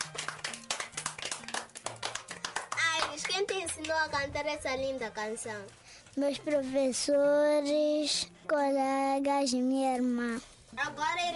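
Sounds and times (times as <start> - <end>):
group clapping at a children's singing event: 0.0 - 4.2
speech: 3.4 - 11.3.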